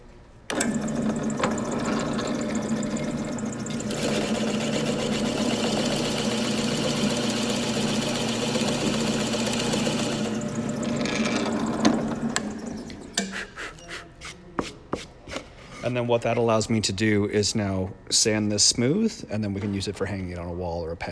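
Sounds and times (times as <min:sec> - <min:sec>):
drill press drilling a hole through wood: 0:00.5 - 0:12.8
speech: 0:15.9 - 0:21.0.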